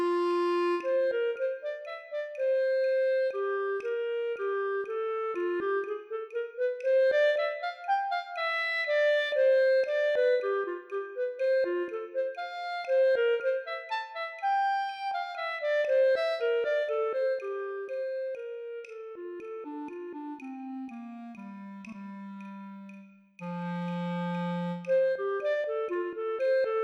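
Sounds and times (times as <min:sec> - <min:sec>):
B-flat clarinet play-along: 0:00.0 - 0:26.8.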